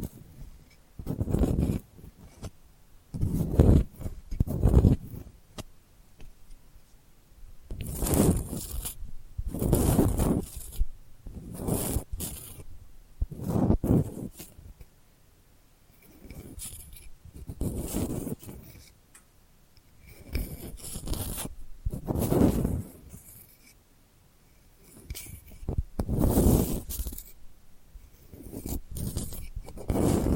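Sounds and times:
delicate papery scratching: 0:00.0 - 0:05.4, 0:07.7 - 0:12.7, 0:13.3 - 0:14.8, 0:15.9 - 0:19.0, 0:20.0 - 0:23.8, 0:24.8 - 0:27.4, 0:28.0 - 0:30.3
soft rubbing: 0:00.0 - 0:14.9, 0:15.9 - 0:19.0, 0:19.9 - 0:23.8, 0:24.5 - 0:30.3.

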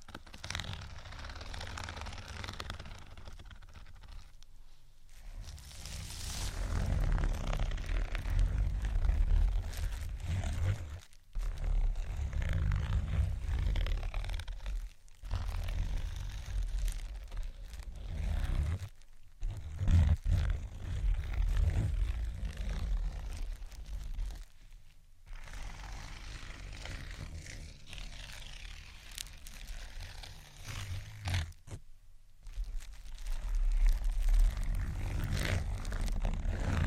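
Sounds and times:
rough rasping scratching: 0:00.0 - 0:04.4, 0:05.1 - 0:31.8, 0:32.4 - 0:36.8.

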